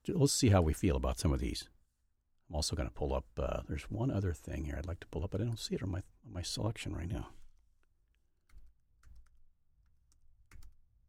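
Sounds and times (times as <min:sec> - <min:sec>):
speech: 0:00.0 - 0:01.8, 0:02.5 - 0:07.4
typing on a computer keyboard: 0:08.4 - 0:11.0.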